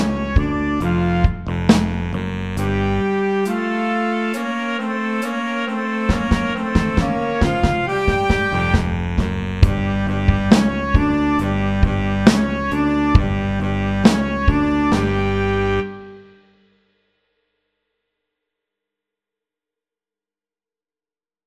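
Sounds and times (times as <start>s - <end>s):
funk music: 0.0s - 16.4s.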